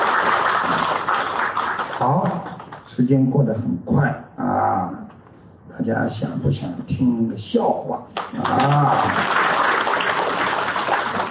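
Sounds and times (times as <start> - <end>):
crowd applauding: 0.0 - 2.8, 8.2 - 11.2
speech: 2.0 - 4.9, 5.8 - 9.4.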